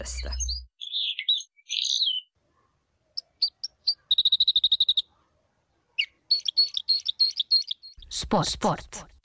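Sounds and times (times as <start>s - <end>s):
speech: 0.0s - 0.5s, 8.3s - 9.1s
red crossbill call: 0.4s - 2.3s, 3.2s - 5.1s, 6.0s - 8.0s.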